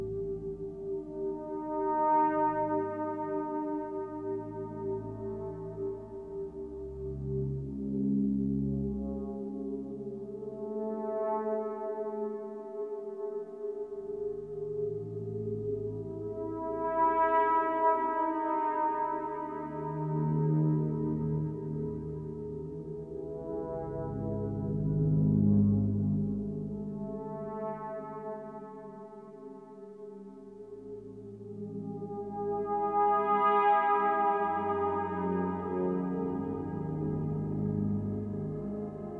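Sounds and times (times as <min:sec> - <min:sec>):
resonant ambience: 0:00.0 - 0:39.1.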